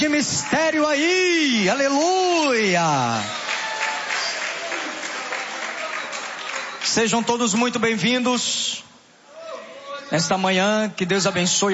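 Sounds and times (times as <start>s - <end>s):
speech: 0.0s - 3.4s, 6.9s - 8.8s, 10.1s - 11.7s
church congregation applauding during a worship service: 1.7s - 7.8s.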